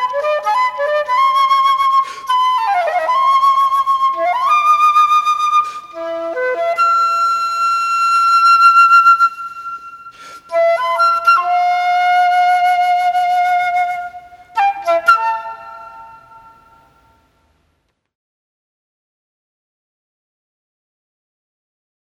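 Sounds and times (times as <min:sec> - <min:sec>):
flute melody: 0:00.0 - 0:17.2.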